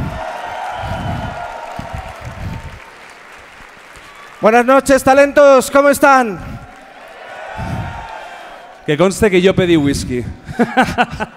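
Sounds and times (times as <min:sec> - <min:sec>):
audience applause: 0:00.0 - 0:09.0
speech: 0:04.4 - 0:06.5, 0:08.9 - 0:11.3
laughter: 0:10.2 - 0:11.3.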